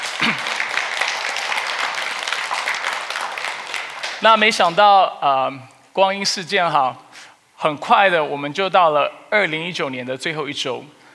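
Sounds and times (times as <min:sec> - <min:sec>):
crowd applause: 0:00.0 - 0:04.7
speech: 0:04.2 - 0:07.0, 0:07.6 - 0:11.0.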